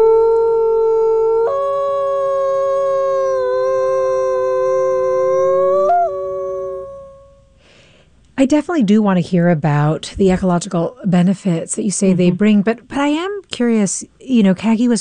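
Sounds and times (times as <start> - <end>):
gray wolf howling: 0.0 - 7.5
speech: 8.4 - 14.9.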